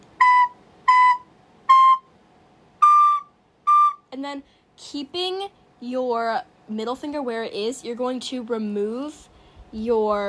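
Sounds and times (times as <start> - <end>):
wind instrument with a back thumb hole playing piping notes: 0.2 - 2.1, 2.8 - 4.1
speech: 4.2 - 10.2.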